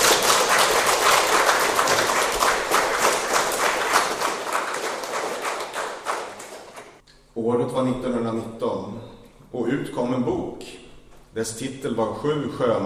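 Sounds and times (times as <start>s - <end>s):
audience applause: 0.0s - 7.0s
speech: 7.4s - 10.8s, 11.4s - 12.8s.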